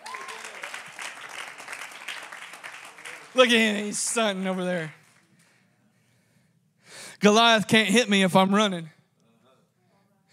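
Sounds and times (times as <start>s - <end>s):
audience applause: 0.0s - 5.3s
speech: 3.4s - 5.0s, 7.2s - 9.0s.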